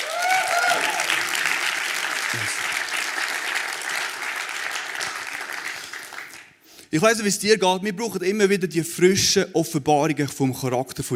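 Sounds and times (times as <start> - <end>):
audience applause: 0.0 - 6.6
speech: 2.3 - 2.6, 6.9 - 11.1.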